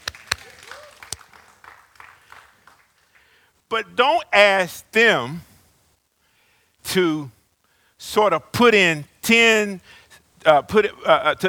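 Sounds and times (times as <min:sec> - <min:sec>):
small audience giving light scattered applause: 0:00.0 - 0:03.4
speech: 0:03.7 - 0:05.5, 0:06.9 - 0:07.4, 0:08.0 - 0:11.4.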